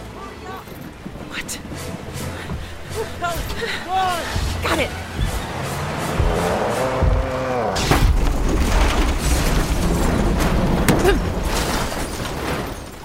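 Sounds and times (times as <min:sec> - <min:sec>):
truck engine droning: 0:00.0 - 0:12.5
speech: 0:01.4 - 0:02.0, 0:03.2 - 0:05.2
heavy crash of truck struck and tipped over: 0:05.0 - 0:13.0.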